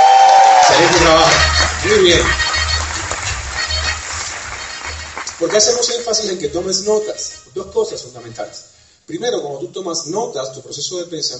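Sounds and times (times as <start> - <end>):
audience applause: 0.0 - 7.0
speech: 0.8 - 2.4, 5.4 - 11.3.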